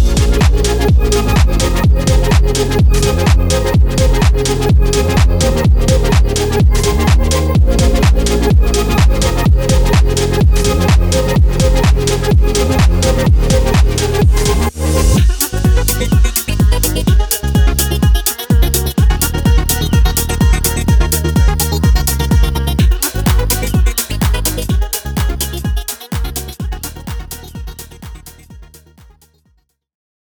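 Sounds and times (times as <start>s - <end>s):
sultry stutter house music: 0.0s - 29.4s.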